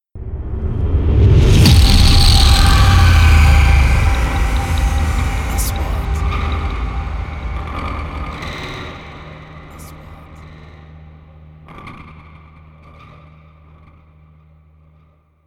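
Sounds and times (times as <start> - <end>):
3D trailer sound effects: 0.2 - 11.6.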